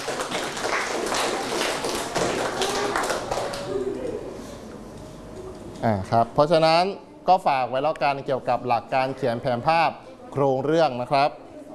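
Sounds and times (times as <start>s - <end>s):
classroom applause for a classmate: 0.0s - 4.0s
speech: 5.8s - 11.4s.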